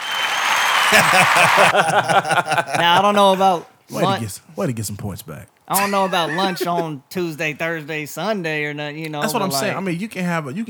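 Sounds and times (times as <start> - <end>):
audience applause: 0.0 - 3.4, 5.8 - 6.8
laughter: 0.8 - 4.3, 5.7 - 7.0
speech: 0.9 - 10.6.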